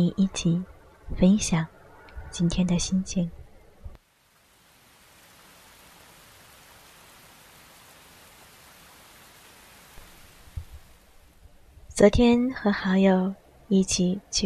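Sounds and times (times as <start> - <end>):
speech: 0.0 - 3.4, 12.0 - 14.4
rain: 4.0 - 12.8.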